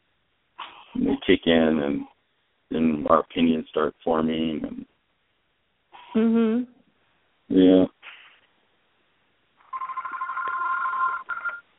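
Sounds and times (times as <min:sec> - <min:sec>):
speech: 0:00.9 - 0:02.1, 0:02.7 - 0:04.9, 0:06.1 - 0:06.8, 0:07.5 - 0:08.0
telephone ringing with electronic trill: 0:09.6 - 0:11.7.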